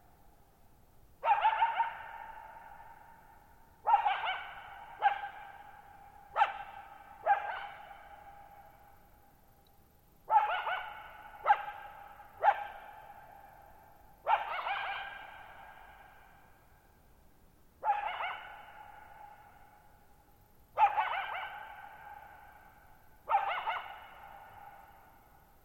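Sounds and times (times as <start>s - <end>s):
coyote barking and yelping: 1.2s - 3.1s, 3.8s - 8.6s, 10.3s - 13.3s, 14.2s - 16.1s, 17.8s - 19.7s, 20.8s - 25.0s.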